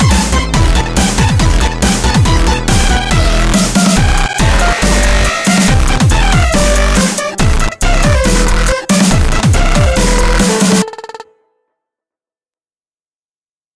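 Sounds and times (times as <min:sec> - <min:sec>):
twisted march: 0:00.7 - 0:11.1.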